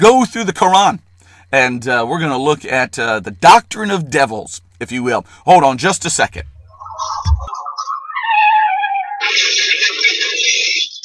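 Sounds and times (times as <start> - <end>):
speech: 0.0 - 7.5
low thud: 6.4 - 7.5
car crash high-pitched screech: 6.7 - 11.0.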